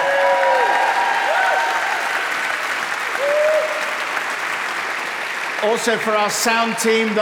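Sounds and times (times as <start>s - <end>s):
faint tonal whistles and cheers: 0.0s - 4.2s
audience applause: 0.0s - 7.2s
speech: 5.6s - 7.2s.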